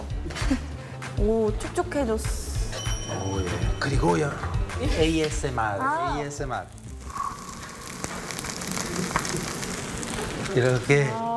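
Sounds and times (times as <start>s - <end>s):
speech: 0.5s - 2.4s, 3.1s - 6.8s, 10.5s - 11.3s
cheese sizzling on a hot pan: 4.9s - 11.3s.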